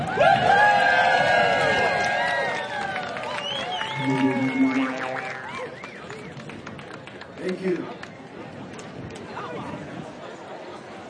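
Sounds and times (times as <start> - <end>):
concert audience whoops and shouts: 0.0 - 5.8
concert audience clapping in Butte Montana: 0.8 - 8.2.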